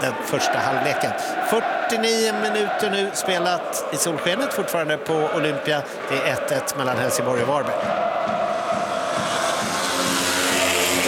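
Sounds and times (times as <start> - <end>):
speech: 0.0 - 8.4
speedway motorcycles racing in a heat: 8.3 - 11.0.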